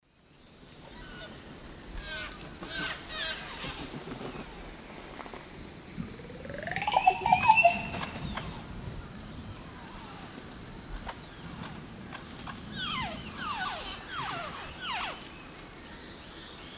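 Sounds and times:
group of green oropendolas singing and calling: 0.9s - 4.5s, 5.8s - 8.8s, 11.2s - 15.6s.

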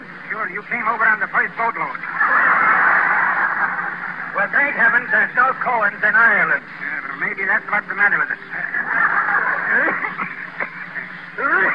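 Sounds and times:
speech: 0.3s - 2.4s, 4.4s - 9.1s, 9.7s - 10.4s, 11.4s - 11.7s
laughter: 2.0s - 5.5s, 8.5s - 11.7s
person coughing: 9.8s - 11.7s.

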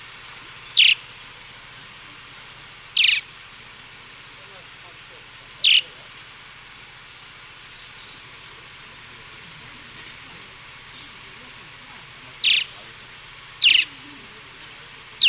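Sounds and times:
Gray-breasted Martin calls, short gurgling chirps, eastern lowlands of South America: 0.6s - 1.1s, 3.0s - 3.3s, 5.6s - 6.0s, 12.3s - 14.3s.

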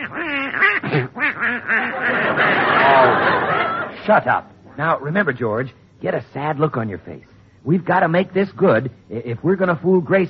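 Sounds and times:
duck quacking: 0.0s - 3.1s
speech: 0.1s - 10.2s
laughter: 0.9s - 4.3s.

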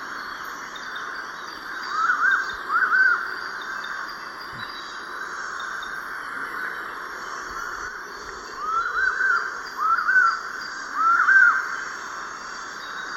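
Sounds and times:
collared puffbird song in the South American eastern lowlands: 1.7s - 4.0s, 8.6s - 11.6s.

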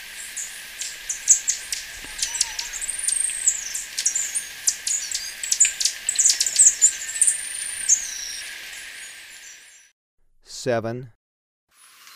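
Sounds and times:
Capped Conebill high thin notes and trills: 0.4s - 9.8s
speech: 10.6s - 11.2s.

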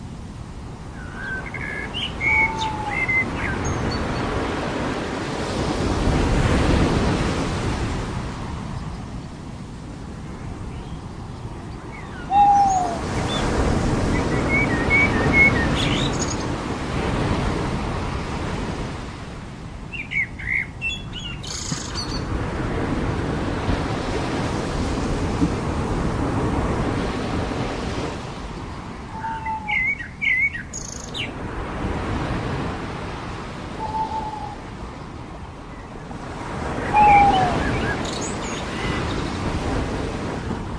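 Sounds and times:
ocean waves on the beach: 0.0s - 40.7s
birds on the beach: 1.0s - 4.6s, 10.6s - 16.6s, 19.9s - 22.3s, 28.5s - 31.4s, 33.8s - 39.6s.

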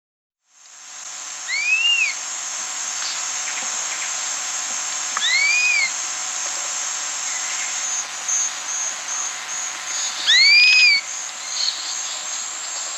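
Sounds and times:
chestnut-capped puffbird slurred whistles in South America: 1.5s - 2.2s, 5.2s - 5.9s, 10.2s - 11.0s.

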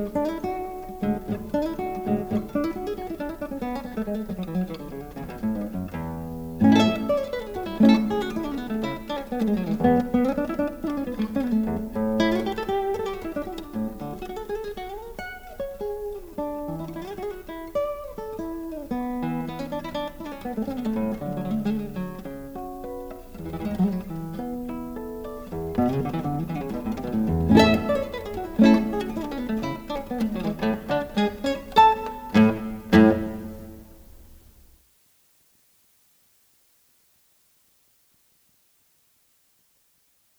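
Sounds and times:
classical guitar strumming: 0.0s - 34.7s.

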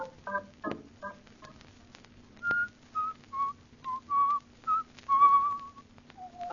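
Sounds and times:
person whistling a tune: 2.4s - 6.4s.

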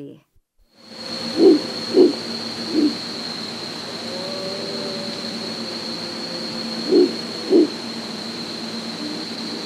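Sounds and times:
Azara's night monkey low hoots in the South American rainforest: 1.1s - 8.0s.

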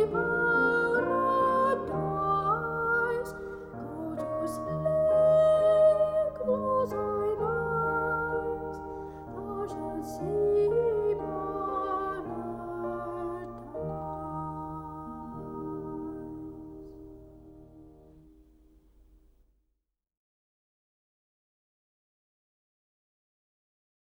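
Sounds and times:
choir singing a cradle song: 0.0s - 18.0s.

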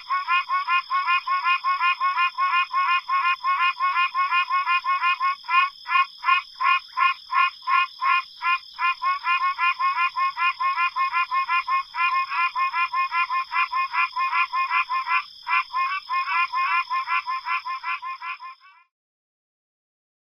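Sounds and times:
Pine Barrens treefrog in North America: 0.0s - 18.9s.

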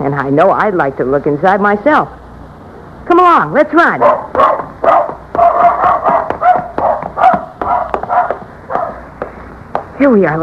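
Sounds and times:
speech: 0.1s - 2.2s, 3.1s - 5.0s, 10.0s - 10.4s
dog barking: 4.0s - 9.1s.

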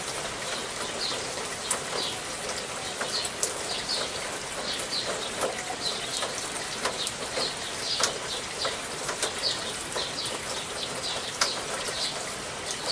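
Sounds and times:
rain trickling: 0.0s - 12.9s.

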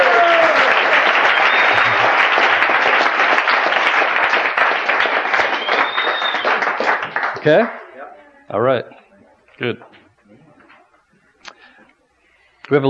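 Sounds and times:
audience applause: 0.0s - 7.8s
speech: 7.4s - 7.8s, 8.5s - 9.0s, 9.6s - 10.0s, 12.7s - 12.8s.

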